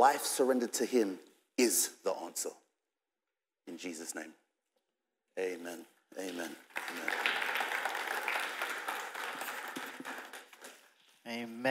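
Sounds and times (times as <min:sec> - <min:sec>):
speech: 0:00.0 - 0:02.6, 0:03.7 - 0:04.4, 0:05.4 - 0:07.7, 0:11.3 - 0:11.7
crowd applauding: 0:06.6 - 0:10.9.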